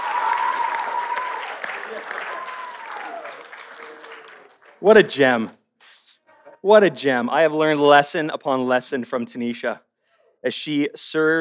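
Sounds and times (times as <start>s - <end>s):
audience applause: 0.0s - 5.0s
speech: 4.8s - 5.6s, 6.6s - 11.3s.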